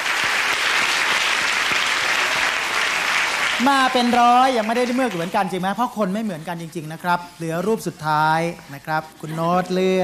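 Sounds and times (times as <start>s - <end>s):
audience applause: 0.0s - 5.6s
speech: 3.6s - 10.0s.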